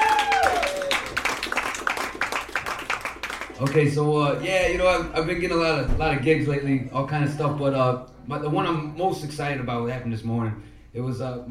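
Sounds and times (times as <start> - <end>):
audience applause: 0.0 - 3.9
speech: 3.6 - 11.4.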